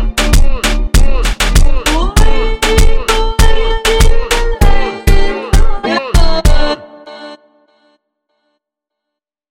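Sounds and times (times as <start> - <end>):
ultra slowed funk music: 0.0 - 7.4.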